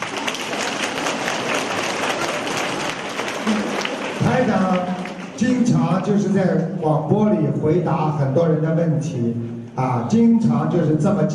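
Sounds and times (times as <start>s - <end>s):
audience applause: 0.0s - 5.6s
speech: 4.4s - 11.3s.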